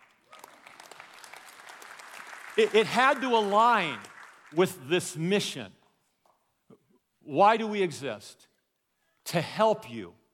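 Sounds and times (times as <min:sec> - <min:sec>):
audience clapping: 0:00.0 - 0:05.2
speech: 0:02.6 - 0:05.8, 0:07.3 - 0:08.5, 0:09.3 - 0:10.2.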